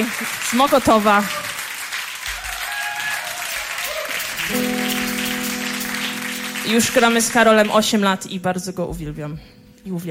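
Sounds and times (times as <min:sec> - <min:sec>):
speech: 0:00.0 - 0:01.5, 0:04.5 - 0:04.7, 0:06.6 - 0:10.0
concert audience applause: 0:00.0 - 0:07.8.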